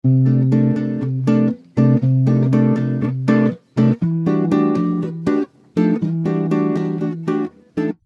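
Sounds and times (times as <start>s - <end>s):
house music guitar chords: 0.0s - 8.0s.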